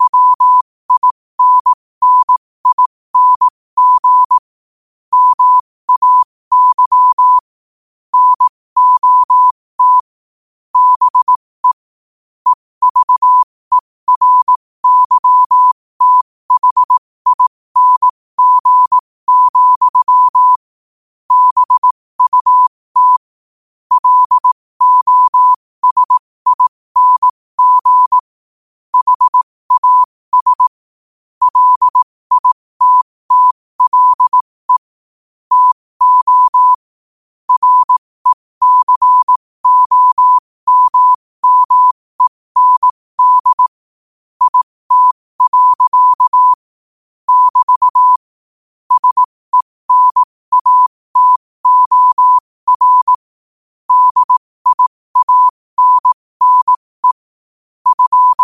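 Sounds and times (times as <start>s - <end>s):
morse code at 5 wpm: 0.0s - 4.5s, 5.1s - 7.5s, 8.1s - 10.2s, 10.8s - 11.9s, 12.5s - 20.7s, 21.3s - 23.3s, 23.9s - 28.3s, 28.9s - 30.8s, 31.4s - 34.9s, 35.5s - 36.9s, 37.5s - 43.8s, 44.4s - 46.6s, 47.3s - 48.3s, 48.9s - 53.3s, 53.9s - 57.2s, 57.8s - 58.4s.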